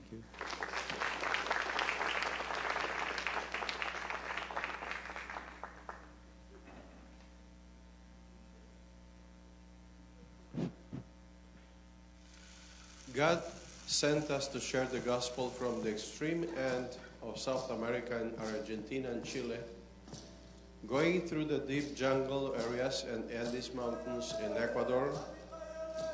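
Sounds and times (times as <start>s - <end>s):
steady electrical hum: 0.0s - 26.1s
speech: 0.1s - 0.4s, 13.2s - 19.8s, 20.9s - 25.4s
audience applause welcoming performers: 0.3s - 6.2s.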